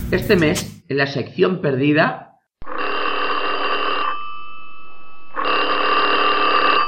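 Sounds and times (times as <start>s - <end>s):
speech: 0.1s - 2.3s
telephone ringing: 2.6s - 6.8s.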